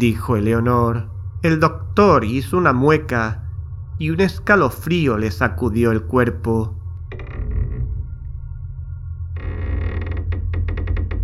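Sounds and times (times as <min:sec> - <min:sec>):
speech: 0:00.0 - 0:03.4, 0:04.0 - 0:06.8
door creaking open: 0:07.0 - 0:11.2.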